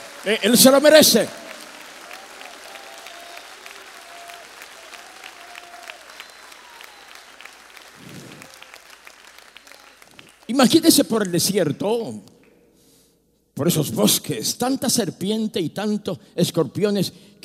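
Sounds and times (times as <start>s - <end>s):
audience applauding loudly: 0.0s - 11.4s
speech: 0.2s - 1.4s, 10.6s - 12.4s, 13.6s - 17.4s.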